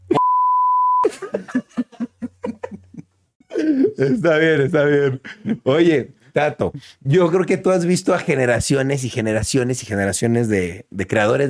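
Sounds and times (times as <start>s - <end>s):
censor bleep: 0.1s - 1.0s
speech: 1.0s - 2.0s, 4.0s - 11.4s
laughter: 1.0s - 3.0s.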